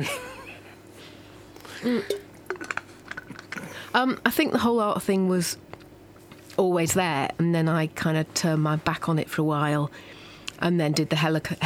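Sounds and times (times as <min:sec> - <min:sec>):
speech: 0:00.0 - 0:00.2, 0:01.8 - 0:02.3, 0:03.9 - 0:05.7, 0:06.6 - 0:11.6
low hum: 0:00.0 - 0:11.6
glass of water clinking and tapping: 0:02.0 - 0:02.8.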